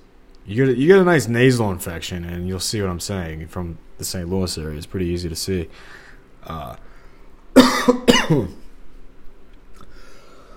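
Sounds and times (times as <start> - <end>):
speech: 0.5 - 6.9, 7.6 - 8.6
harsh coughing from choking on chewing tobacco dip: 7.6 - 8.7.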